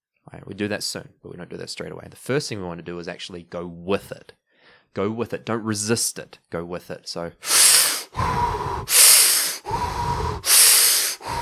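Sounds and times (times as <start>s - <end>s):
speech: 0.3s - 9.0s
deep breathing through the nose: 4.5s - 4.9s, 7.4s - 11.4s.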